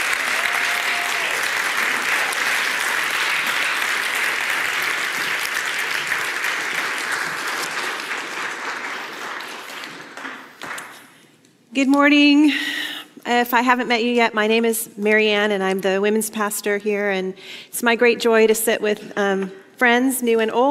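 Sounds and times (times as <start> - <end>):
audience applause greeting panelists at a church gathering: 0.0 - 11.0
speech: 11.8 - 20.6.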